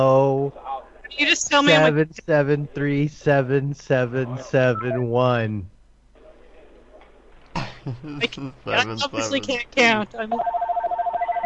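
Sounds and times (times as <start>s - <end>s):
speech: 0.0s - 5.7s, 7.8s - 10.6s
laughter: 1.6s - 2.8s, 3.4s - 5.5s, 7.6s - 10.1s
telephone ringing: 10.4s - 11.4s.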